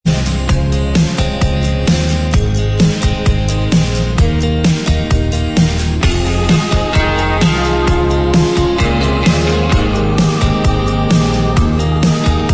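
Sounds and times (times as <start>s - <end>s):
instrumental backing track: 0.0s - 12.5s.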